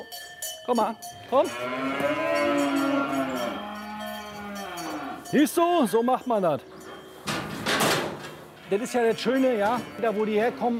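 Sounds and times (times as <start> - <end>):
speech: 0.1 - 2.9, 5.3 - 6.8, 8.7 - 10.7
cow mooing: 1.3 - 5.3, 8.6 - 10.7.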